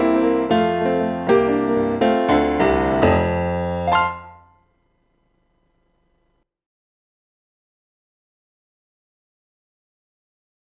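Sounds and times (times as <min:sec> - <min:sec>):
piano march: 0:00.0 - 0:04.6.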